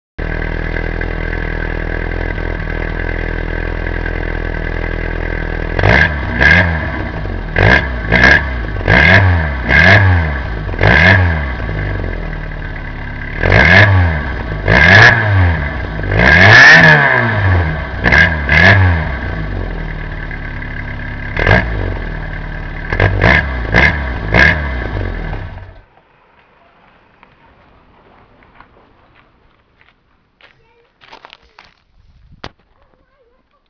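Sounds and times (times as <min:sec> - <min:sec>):
moped: 0:00.2 - 0:33.6.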